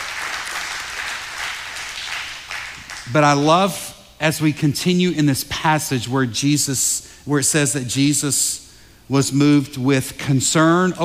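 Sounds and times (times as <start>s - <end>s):
crowd audience clapping: 0.0s - 3.2s
speech: 3.1s - 8.4s, 9.1s - 11.0s.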